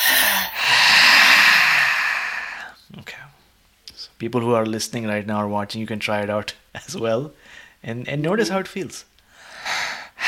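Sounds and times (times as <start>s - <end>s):
forceful roaring exhale in yoga breathing: 0.0s - 2.7s
speech: 4.2s - 9.1s.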